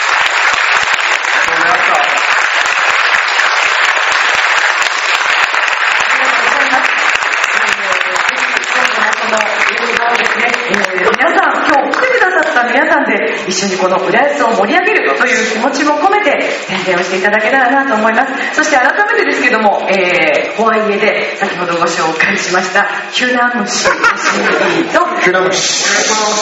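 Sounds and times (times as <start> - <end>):
audience applause at a screening: 0.0 - 12.6
speech: 13.4 - 26.3
laughter: 23.7 - 25.0.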